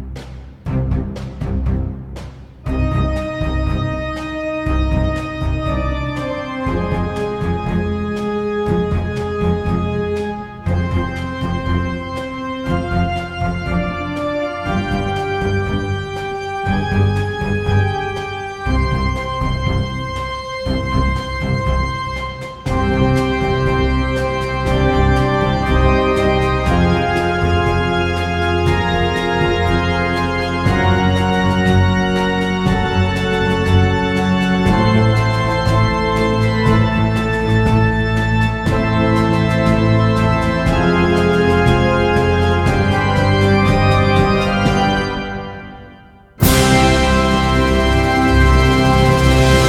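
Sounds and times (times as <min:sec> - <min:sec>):
organ: 0:00.2 - 0:49.6.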